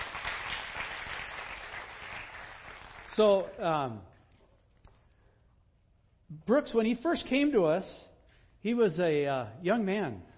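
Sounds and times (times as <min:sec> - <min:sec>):
church congregation applause: 0:00.0 - 0:03.1
speech: 0:03.2 - 0:04.1, 0:06.3 - 0:10.3.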